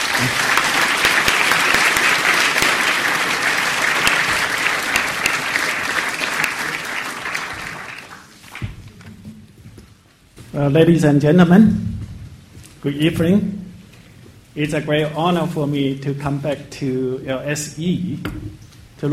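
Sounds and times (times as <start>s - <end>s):
audience applause welcoming a professor to the podium at the LSE: 0.0s - 9.0s
speech: 0.2s - 0.4s, 10.6s - 12.0s, 12.8s - 13.6s, 14.6s - 19.1s.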